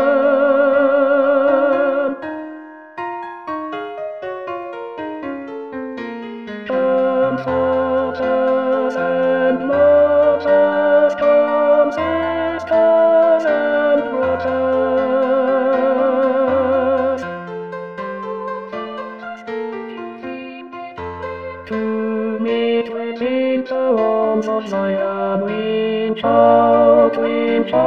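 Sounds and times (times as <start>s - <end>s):
tenor voice singing: 0.0s - 2.2s, 6.7s - 17.3s, 18.4s - 27.8s.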